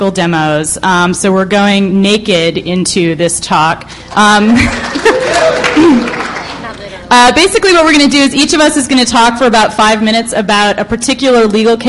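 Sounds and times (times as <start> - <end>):
speech: 0.0 - 6.2, 7.1 - 11.8
audience clapping at a talk panel: 4.1 - 7.0
audience chuckling: 4.5 - 6.7.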